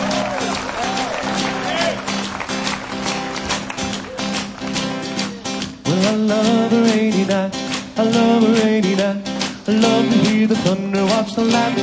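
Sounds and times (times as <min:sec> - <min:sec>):
crowd clapping: 0:00.0 - 0:06.2
speech: 0:06.1 - 0:11.8.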